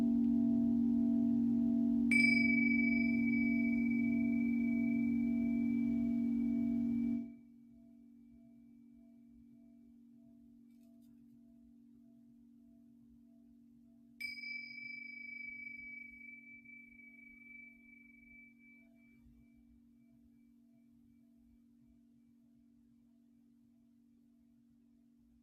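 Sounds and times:
bright metallic singing bowl strikes: 0.0 - 7.3, 14.2 - 18.8
singing bowl drone: 0.0 - 21.2.

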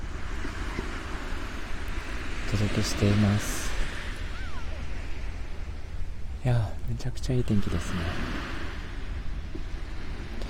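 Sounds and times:
ocean waves on the seashore in Kanagawa: 0.0 - 10.4
speech: 2.5 - 3.6, 6.5 - 8.6.

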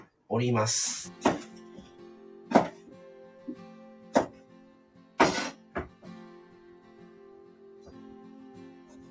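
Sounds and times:
speech: 0.4 - 1.5
knife chopping eggplant on a board: 1.2 - 1.5, 2.5 - 2.7, 4.1 - 4.3, 5.2 - 5.9.

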